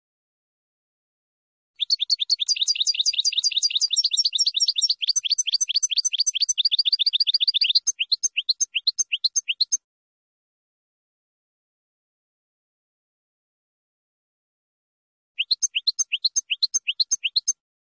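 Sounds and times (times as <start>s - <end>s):
finch song: 1.8s - 9.8s, 15.4s - 17.6s.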